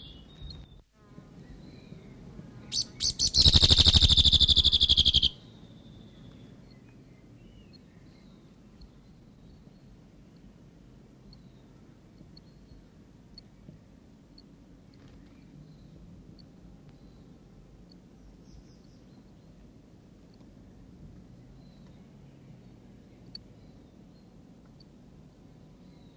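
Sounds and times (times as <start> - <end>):
male whitehead territorial call: 1.3 - 8.4.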